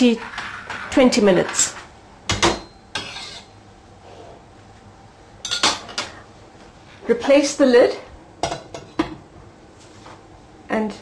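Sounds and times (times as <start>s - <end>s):
speech: 0.0s - 0.4s, 1.0s - 1.8s, 7.1s - 8.1s, 10.8s - 10.9s
spoon clinking and scraping against a pot while stirring curry: 2.9s - 4.4s.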